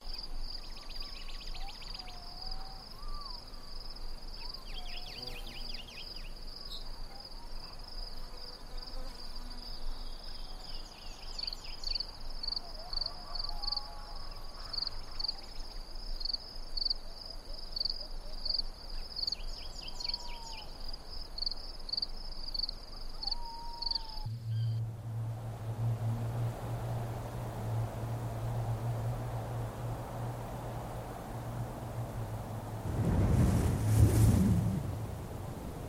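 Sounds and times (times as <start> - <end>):
ambience: 24.0 - 35.8.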